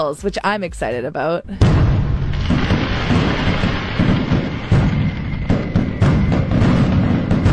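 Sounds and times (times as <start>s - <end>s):
speech: 0.0s - 2.0s
celebratory fireworks sound effect: 1.6s - 7.5s.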